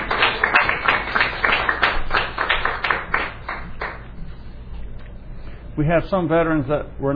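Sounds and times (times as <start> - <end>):
audience applauding veterans: 0.0 - 4.0
speech: 5.8 - 7.1.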